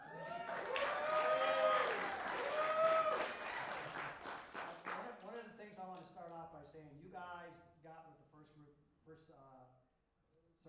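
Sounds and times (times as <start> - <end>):
crowd whooping and cheering: 0.0 - 4.4
audience applause: 0.0 - 5.4
speech: 8.4 - 9.8.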